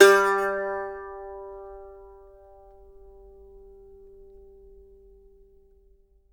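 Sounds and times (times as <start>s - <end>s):
mandolin note G3: 0.0s - 2.8s.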